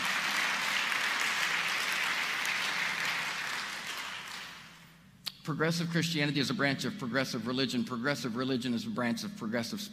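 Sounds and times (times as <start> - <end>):
audience applause: 0.0 - 4.8
speech: 5.5 - 9.9.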